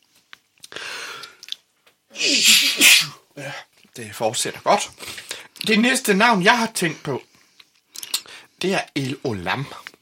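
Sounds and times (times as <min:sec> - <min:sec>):
person coughing with throat tickle: 0:02.2 - 0:03.2
speech: 0:02.2 - 0:07.3, 0:08.6 - 0:09.9.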